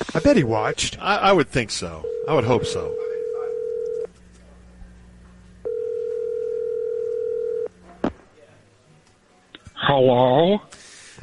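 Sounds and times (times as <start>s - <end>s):
speech: 0.2s - 3.0s, 9.9s - 11.2s
telephone dial tone: 2.0s - 4.1s, 5.6s - 7.7s.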